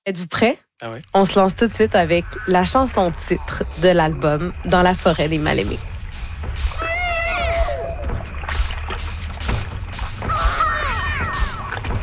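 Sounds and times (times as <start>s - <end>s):
speech: 0.1s - 5.9s
baby wail sample scratched on a record: 6.6s - 8.3s, 10.2s - 12.0s.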